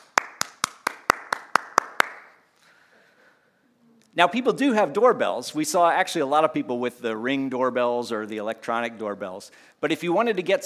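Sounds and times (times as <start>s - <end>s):
sharp hand claps to call at a door: 0.0s - 2.4s
speech: 4.2s - 10.6s.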